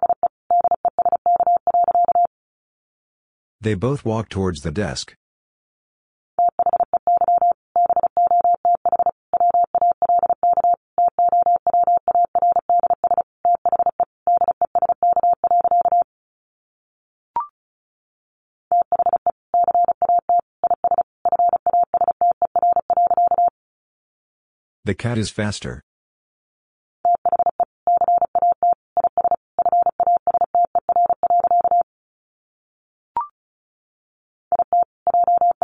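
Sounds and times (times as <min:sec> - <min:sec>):
fast Morse code beeps at 35 words per minute: 0:00.0 - 0:02.3, 0:06.4 - 0:16.0, 0:18.8 - 0:23.5, 0:27.1 - 0:31.8, 0:34.5 - 0:35.6
speech: 0:03.6 - 0:05.2, 0:24.9 - 0:25.8.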